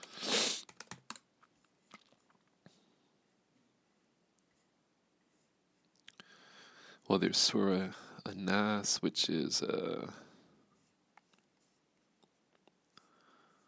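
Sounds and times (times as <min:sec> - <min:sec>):
typing on a computer keyboard: 0:00.0 - 0:01.3
speech: 0:07.1 - 0:10.3.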